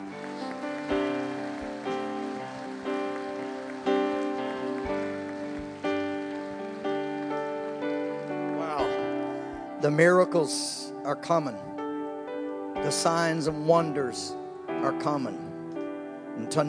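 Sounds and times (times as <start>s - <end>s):
audience clapping: 0.0s - 9.8s
speech: 9.8s - 11.7s, 12.8s - 15.4s, 16.5s - 16.6s.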